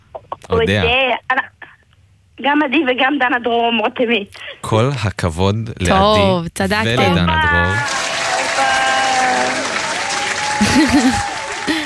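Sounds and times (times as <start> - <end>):
person calling out: 0.4 - 1.0, 5.8 - 7.9
speech: 0.5 - 1.3, 2.4 - 8.0, 10.8 - 11.2
laughter: 5.8 - 6.3, 6.9 - 8.0, 10.4 - 11.8
audience applause with cheers: 7.1 - 11.8.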